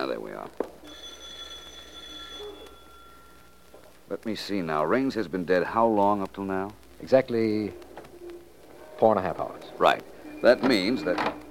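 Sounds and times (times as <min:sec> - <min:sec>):
speech: 0:00.0 - 0:01.1, 0:04.1 - 0:07.8, 0:09.0 - 0:11.4
bell ringing: 0:00.8 - 0:03.6.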